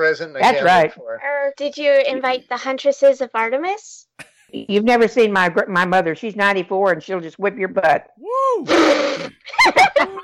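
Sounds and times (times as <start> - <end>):
speech: 0.0 - 10.2
vocal exclamations: 8.2 - 9.4
laughter: 8.6 - 10.2
sneeze: 8.7 - 9.4.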